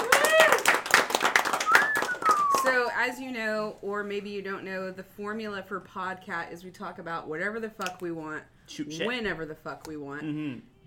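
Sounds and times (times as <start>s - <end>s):
audience applause: 0.0s - 2.8s
speech: 2.7s - 10.7s.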